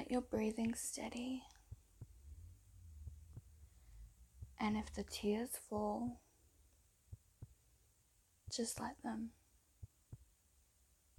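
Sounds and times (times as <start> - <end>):
faint steady hum: 0.0 - 11.1
speech: 0.1 - 1.5, 4.6 - 6.2, 8.5 - 9.4
slow heartbeat: 1.5 - 6.2, 7.1 - 7.8, 9.8 - 10.3.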